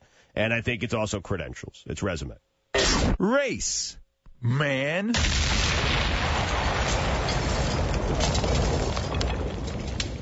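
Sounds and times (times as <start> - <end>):
speech: 0.4 - 5.8
glass breaking: 6.2 - 10.2.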